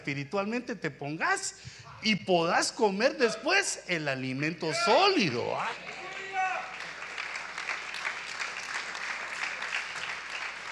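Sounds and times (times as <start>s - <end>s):
speech: 0.0s - 6.0s
weak audience applause: 5.6s - 10.7s.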